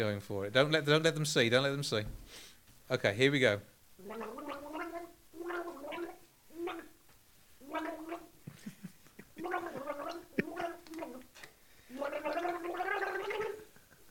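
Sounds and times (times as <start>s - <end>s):
speech: 0.0s - 4.7s
person gargling water while humming a melody: 4.0s - 7.0s, 7.6s - 8.3s, 9.3s - 11.3s, 11.9s - 13.8s.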